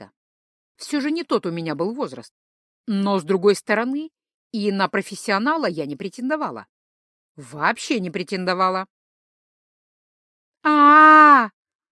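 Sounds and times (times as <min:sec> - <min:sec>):
speech: 0:00.8 - 0:06.7, 0:07.4 - 0:09.0, 0:10.6 - 0:11.6
person crying out in pain from a leg cramp: 0:10.7 - 0:11.5.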